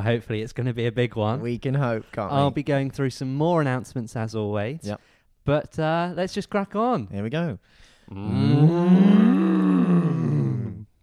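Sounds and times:
speech: 0:00.0 - 0:09.4
cow mooing sound effect: 0:08.2 - 0:10.6.

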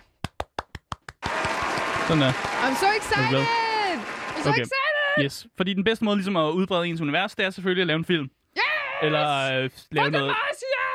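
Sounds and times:
hands clapping: 0:00.0 - 0:04.7
speech: 0:02.1 - 0:03.6, 0:04.4 - 0:08.4, 0:09.0 - 0:10.5.

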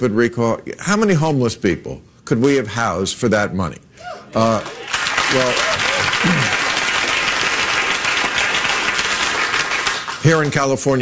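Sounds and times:
speech: 0:00.0 - 0:06.6, 0:10.2 - 0:11.0
crowd cheering and applauding: 0:04.4 - 0:10.2.

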